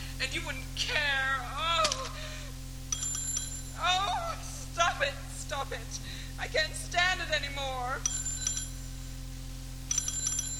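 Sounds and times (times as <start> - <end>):
low steady hum: 0.0 - 10.5
speech: 0.4 - 1.2, 5.7 - 8.2
telephone bell ringing: 2.9 - 3.8, 8.1 - 8.8, 9.9 - 10.5.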